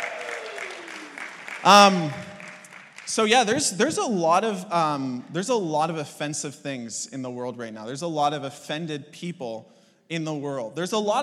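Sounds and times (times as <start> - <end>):
loud whoops and cheering voices: 0.0 - 2.2
audience applause: 0.0 - 4.1
speech: 1.6 - 2.2, 3.1 - 11.2.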